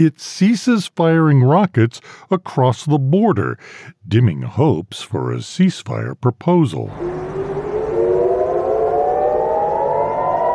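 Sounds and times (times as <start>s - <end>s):
speech: 0.0s - 7.1s
air raid sirens wailing: 6.9s - 10.5s.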